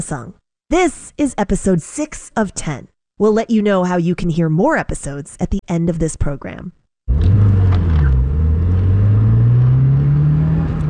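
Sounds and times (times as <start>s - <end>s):
speech: 0.0s - 6.8s
silver sedan speeding through a multi-story parking lot: 7.1s - 10.8s.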